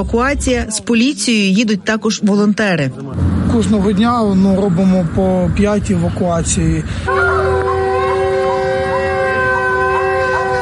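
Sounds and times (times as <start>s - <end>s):
speech: 0.0s - 7.4s
air raid alert siren with a continuous tone: 7.0s - 10.6s.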